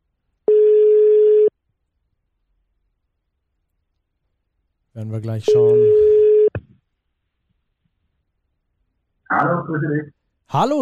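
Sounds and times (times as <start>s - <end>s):
telephone ringing tone on outgoing call: 0.5s - 1.5s, 5.5s - 6.5s
speech: 5.0s - 6.1s, 9.7s - 10.8s.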